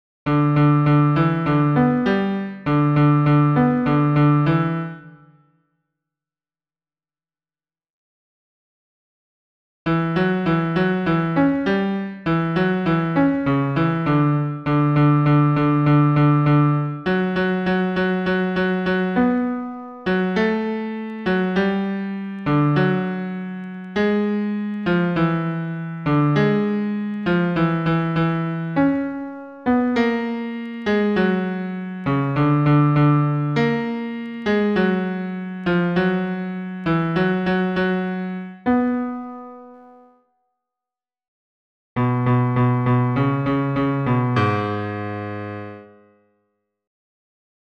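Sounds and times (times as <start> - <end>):
solo piano tango bass: 0.3 - 5.3, 9.9 - 40.1, 42.0 - 46.2.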